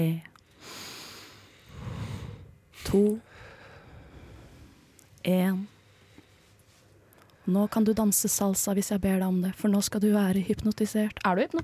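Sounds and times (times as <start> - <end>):
speech: 0.0 - 0.3, 2.8 - 3.3, 5.2 - 5.8, 7.5 - 11.6
breathing in through the nose and out through the mouth: 0.4 - 8.1.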